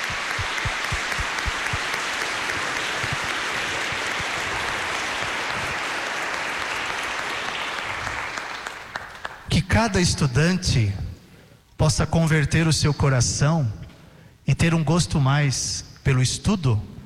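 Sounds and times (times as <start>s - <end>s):
audience applause: 0.0s - 9.5s
speech: 9.8s - 11.0s, 11.8s - 13.8s, 14.5s - 16.9s.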